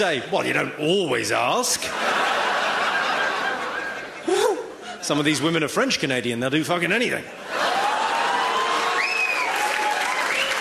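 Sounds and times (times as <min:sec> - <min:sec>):
speech: 0:00.0 - 0:02.4, 0:05.0 - 0:07.6
laughter: 0:01.7 - 0:05.5, 0:07.3 - 0:08.8
audience applause: 0:07.6 - 0:10.6.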